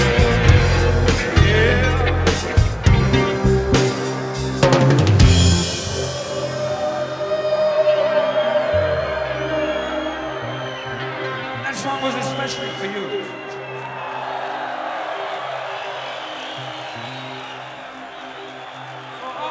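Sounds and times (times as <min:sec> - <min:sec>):
live blues music: 0:00.0 - 0:13.3.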